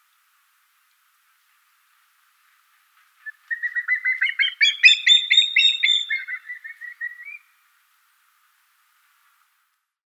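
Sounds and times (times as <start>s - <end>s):
Common Black Hawk calling: 3.2s - 7.4s.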